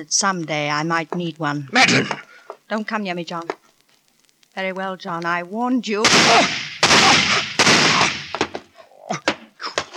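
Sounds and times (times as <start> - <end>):
speech: 0.0 - 3.6, 4.6 - 7.2
handgun shots in a radio drama: 6.1 - 8.6.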